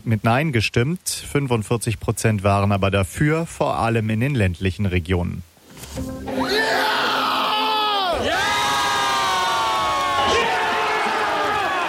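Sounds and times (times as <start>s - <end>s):
speech: 0.0s - 6.5s
football fans cheering a World Cup win: 6.3s - 11.8s.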